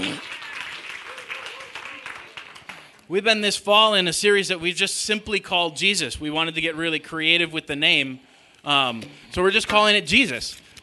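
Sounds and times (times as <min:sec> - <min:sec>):
audience clapping: 0:00.0 - 0:03.1
speech: 0:03.1 - 0:10.6.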